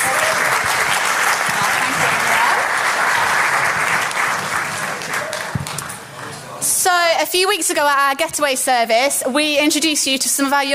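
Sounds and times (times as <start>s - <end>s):
audience applause: 0.0s - 6.4s
speech: 7.2s - 10.7s.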